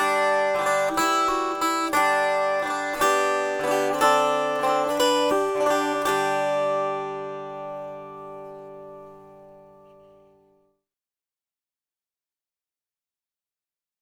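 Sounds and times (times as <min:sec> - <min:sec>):
slow jig tune: 0:00.1 - 0:10.3.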